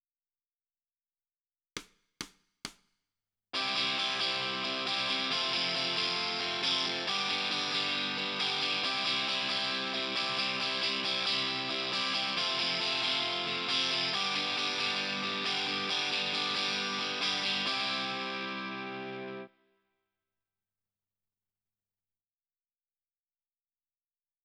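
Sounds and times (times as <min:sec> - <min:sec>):
guitar: 0:03.6 - 0:19.7.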